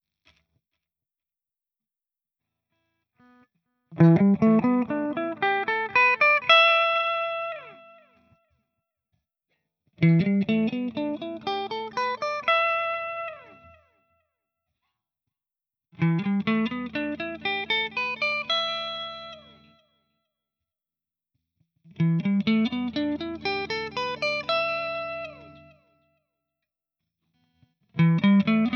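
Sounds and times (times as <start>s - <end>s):
Jackson electric guitar clean tone: 4.0s - 8.0s, 10.0s - 13.8s, 16.0s - 19.8s, 22.0s - 25.8s, 28.0s - 28.7s.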